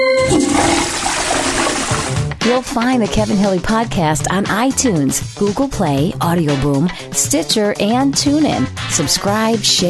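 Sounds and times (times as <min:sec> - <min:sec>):
toilet flushing: 0:00.2 - 0:02.4
speech: 0:02.6 - 0:09.8.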